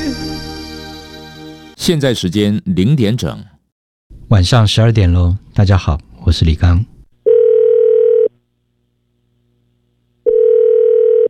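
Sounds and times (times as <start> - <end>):
speech: 1.8 - 3.6, 4.3 - 6.9
telephone tone before voicemail: 7.2 - 8.3, 10.2 - 11.2.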